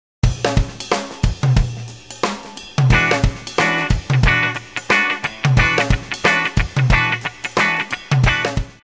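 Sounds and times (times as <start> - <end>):
rhythm guitar: 0.2 - 8.8.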